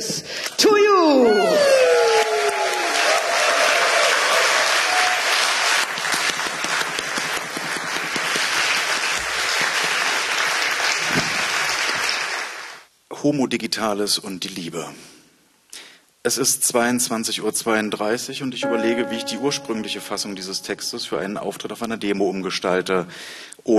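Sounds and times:
audience applause: 0:01.4 - 0:12.8
speech: 0:13.3 - 0:15.2, 0:16.2 - 0:23.7.

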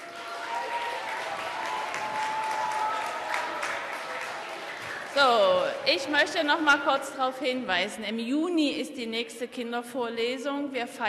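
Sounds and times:
audience applause: 0:00.0 - 0:06.4
speech: 0:05.2 - 0:11.0.

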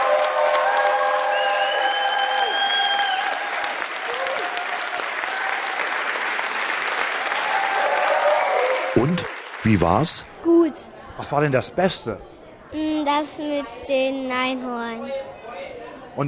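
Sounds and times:
children's audience applause: 0:00.0 - 0:10.3
speech: 0:09.0 - 0:15.4.

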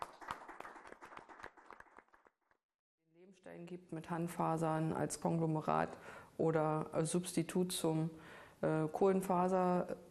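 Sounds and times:
audience applause for the camera team: 0:00.0 - 0:02.2
speech: 0:03.4 - 0:10.0.

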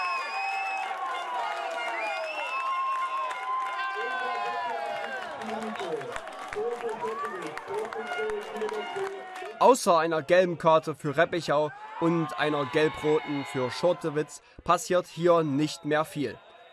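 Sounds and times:
football fans cheering after a goal: 0:00.0 - 0:14.4
speech: 0:05.9 - 0:16.4.

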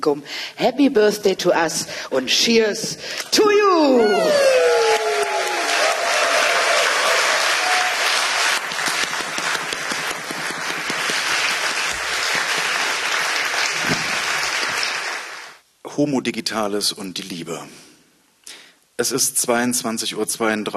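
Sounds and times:
speech: 0:00.0 - 0:04.7, 0:16.0 - 0:17.9, 0:19.0 - 0:20.7
audience applause: 0:04.0 - 0:15.6.

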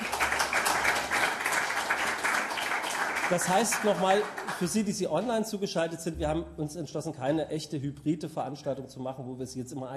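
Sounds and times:
crowd applauding: 0:00.0 - 0:05.0
speech: 0:03.3 - 0:09.9.

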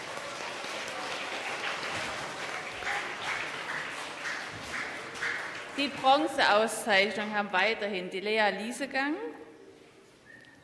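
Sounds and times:
loud applause: 0:00.0 - 0:06.3
speech: 0:05.8 - 0:09.4.

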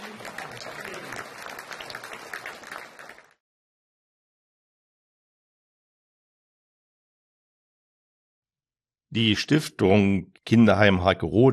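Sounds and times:
audience applause: 0:00.0 - 0:03.4
speech: 0:09.1 - 0:11.5.

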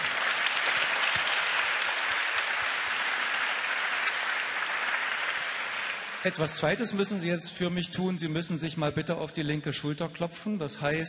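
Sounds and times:
audience applause in a hall: 0:00.0 - 0:06.9
speech: 0:06.2 - 0:11.0.

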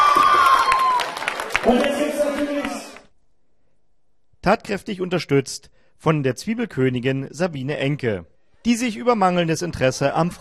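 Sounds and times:
audience applause at town festival: 0:00.0 - 0:03.1
speech: 0:04.4 - 0:10.3.

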